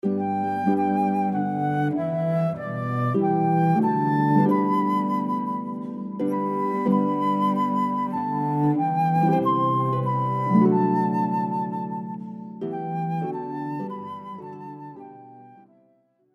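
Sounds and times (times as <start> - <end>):
hymn on harp flute and cello: 0.0 - 16.0.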